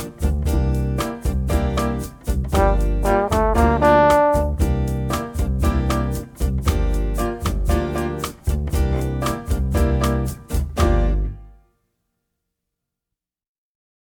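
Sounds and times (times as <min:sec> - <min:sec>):
bossa nova improvisation: 0:00.0 - 0:11.6.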